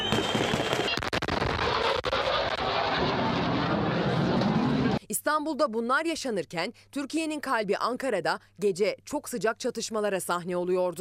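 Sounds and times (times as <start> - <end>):
gunshots fired on a crowd: 0.0 - 4.3
speech: 5.3 - 10.9.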